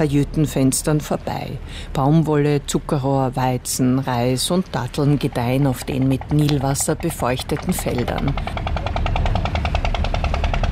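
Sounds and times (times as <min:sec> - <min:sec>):
speech: 0:00.0 - 0:08.8
water pumps rattling: 0:04.9 - 0:10.7.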